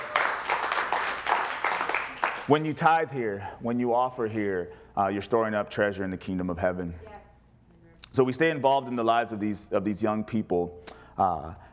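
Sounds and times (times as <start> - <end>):
audience clapping: 0.0 - 2.9
speech: 2.5 - 7.2, 8.2 - 11.6.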